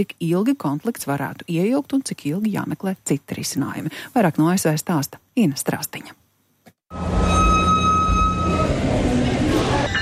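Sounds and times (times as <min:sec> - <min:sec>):
speech: 0:00.0 - 0:06.2, 0:06.9 - 0:07.7
rail rumble at Santa Clarita train station: 0:06.9 - 0:10.0
sustained high whining tone: 0:06.9 - 0:10.0.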